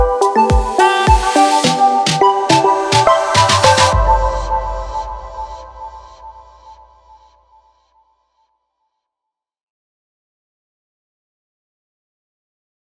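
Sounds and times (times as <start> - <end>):
tropical house summer music: 0.0 - 7.2.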